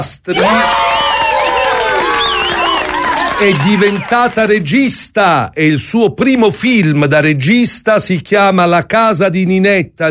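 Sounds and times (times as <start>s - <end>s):
speech: 0.0s - 0.9s, 3.4s - 10.0s
shouting voices: 0.3s - 4.2s
applause sound effect of crowd cheering: 0.3s - 4.6s
whistles: 0.9s - 3.1s.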